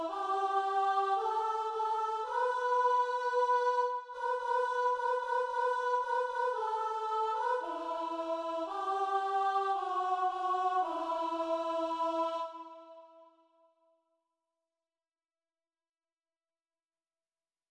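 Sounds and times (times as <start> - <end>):
soprano singing a mass: 0.0 - 13.2.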